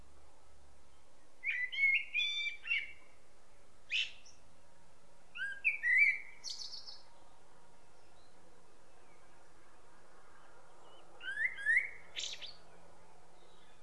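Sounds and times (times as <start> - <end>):
common blackbird singing: 0.9 - 3.1, 3.9 - 4.4, 5.4 - 9.4, 10.4 - 12.8, 13.4 - 13.8.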